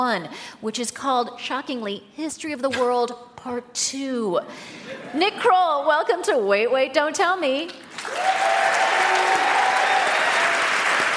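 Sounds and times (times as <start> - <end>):
speech: 0.0 - 8.6
audience applause: 7.9 - 11.1.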